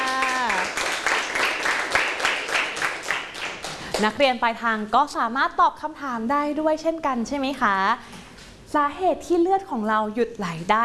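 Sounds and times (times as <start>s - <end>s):
students clapping for themselves: 0.0s - 4.1s
speech: 4.0s - 10.8s.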